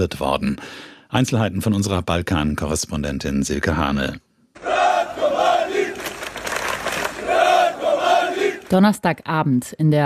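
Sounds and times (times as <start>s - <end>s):
speech: 0.0s - 4.3s, 8.7s - 10.0s
crowd of many voices chanting in unison: 4.6s - 8.8s.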